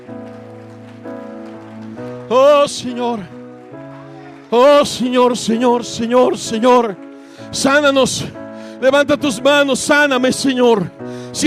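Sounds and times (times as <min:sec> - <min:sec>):
audience clapping hands: 0:00.0 - 0:09.1
speech: 0:02.3 - 0:03.4, 0:04.5 - 0:11.4.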